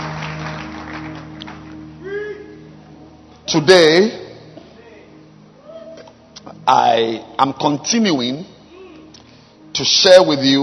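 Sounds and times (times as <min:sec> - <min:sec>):
audience clapping hands: 0:00.0 - 0:02.0
sustained musical tones: 0:00.0 - 0:10.6
speech: 0:03.5 - 0:04.2, 0:06.7 - 0:08.6, 0:09.8 - 0:10.6.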